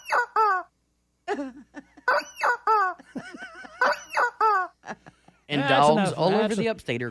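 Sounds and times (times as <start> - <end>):
rubber chicken squawking: 0.0 - 0.7, 2.1 - 3.0, 3.8 - 4.8
speech: 1.4 - 1.8, 5.5 - 7.0.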